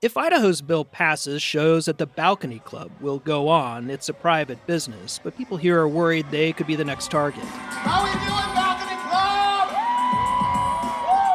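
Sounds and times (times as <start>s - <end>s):
speech: 0.0s - 8.6s
large crowd cheering at a weekly drag competition: 2.4s - 11.3s.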